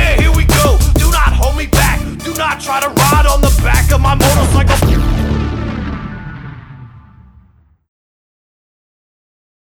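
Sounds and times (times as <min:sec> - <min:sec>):
loader rap music: 0:00.0 - 0:06.3.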